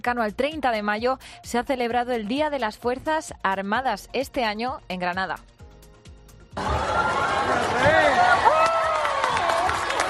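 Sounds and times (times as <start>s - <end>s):
speech: 0.0s - 5.6s
crowd applauding: 6.6s - 10.0s.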